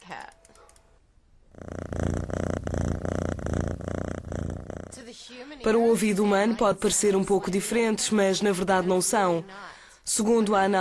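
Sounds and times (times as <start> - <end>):
domestic cat purring: 1.4 - 5.1
speech: 5.3 - 10.7.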